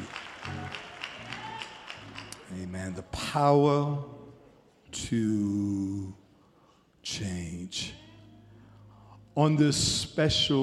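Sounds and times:
audience clapping hands in unison: 0.0s - 3.0s
low sustained musical backing: 0.0s - 10.6s
speech: 2.6s - 4.2s, 4.9s - 6.2s, 7.1s - 8.0s, 9.4s - 10.6s.

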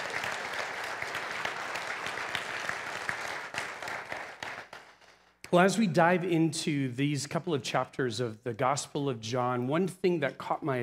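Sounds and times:
audience clapping: 0.0s - 5.5s
speech: 5.5s - 10.8s.

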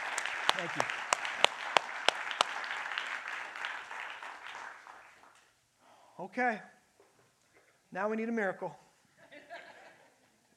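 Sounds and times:
audience applause: 0.0s - 5.4s
speech: 0.6s - 1.0s, 6.2s - 6.8s, 7.9s - 8.8s
laughter: 9.2s - 10.5s.

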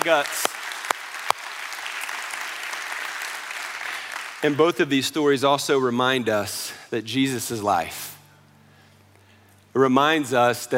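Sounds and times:
speech: 0.0s - 0.5s, 4.4s - 8.1s, 9.8s - 10.7s
audience clapping: 0.0s - 5.0s.

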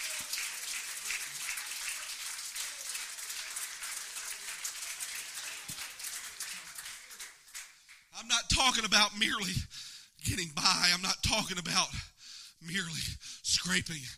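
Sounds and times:
audience clapping hands: 0.0s - 8.9s
speech: 8.2s - 14.1s.

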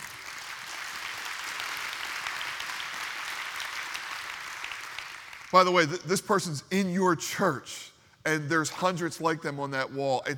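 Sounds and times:
audience applause: 0.0s - 5.6s
speech: 5.5s - 10.3s.

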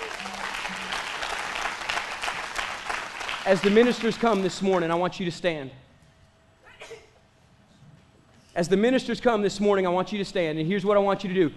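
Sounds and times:
audience clapping hands in steady dense applause: 0.0s - 5.0s
speech: 3.4s - 5.8s, 8.6s - 11.5s.

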